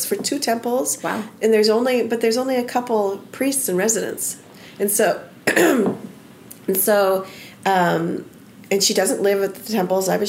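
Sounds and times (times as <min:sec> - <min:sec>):
speech: 0:00.0 - 0:06.1, 0:06.7 - 0:10.2
person clearing throat from a tickle: 0:05.5 - 0:06.0.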